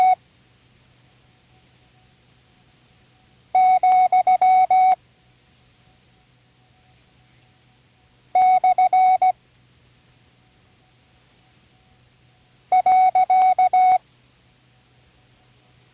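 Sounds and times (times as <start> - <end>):
Morse code punctuation review tones: 3.6 - 5.0, 8.4 - 9.4, 12.7 - 14.0.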